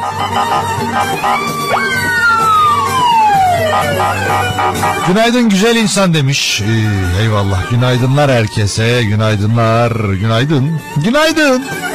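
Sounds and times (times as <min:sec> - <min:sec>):
police siren wailing: 0:00.0 - 0:05.6
low traffic rumble: 0:00.0 - 0:07.8
speech: 0:00.2 - 0:02.2, 0:03.6 - 0:11.9.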